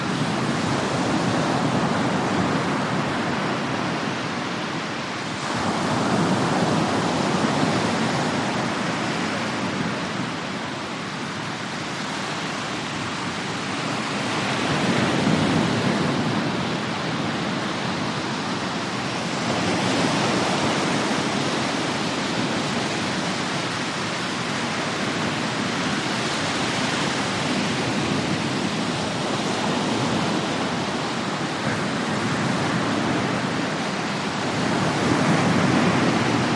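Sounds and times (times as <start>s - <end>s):
medium surf on a wide beach: 0.0s - 36.5s.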